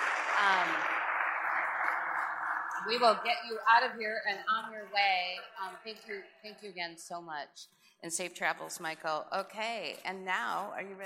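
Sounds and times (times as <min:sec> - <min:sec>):
audience applause: 0:00.0 - 0:03.7
speech: 0:02.8 - 0:11.0.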